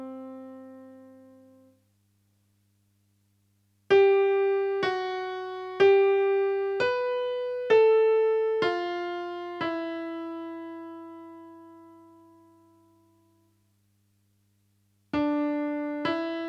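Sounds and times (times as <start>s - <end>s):
slow piano backing track: 0.0s - 1.7s, 3.9s - 13.0s, 15.2s - 16.4s.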